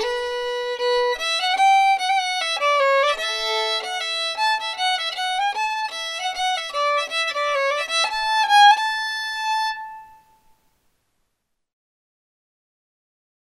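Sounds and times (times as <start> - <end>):
fiddle playing a reel: 0.0 - 10.3.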